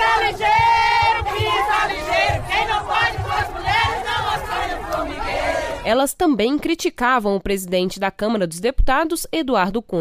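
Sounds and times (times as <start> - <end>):
protest crowd chanting slogans: 0.0 - 5.9
speech: 5.9 - 10.0.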